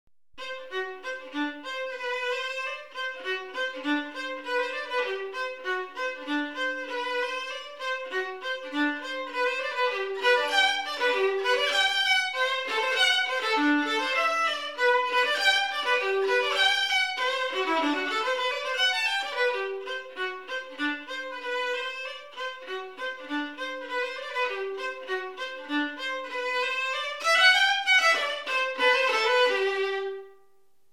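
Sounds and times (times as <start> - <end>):
violin melody: 0.4 - 30.6.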